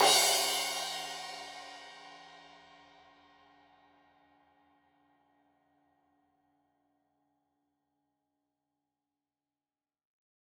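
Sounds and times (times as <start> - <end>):
15 inch crash cymbal edge hit: 0.0 - 2.0.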